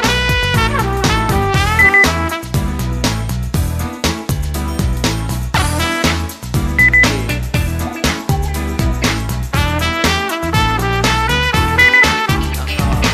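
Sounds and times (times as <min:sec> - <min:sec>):
jazz music: 0:00.0 - 0:04.0, 0:04.6 - 0:13.1
beep: 0:01.8 - 0:02.2, 0:06.8 - 0:07.1, 0:11.8 - 0:12.2.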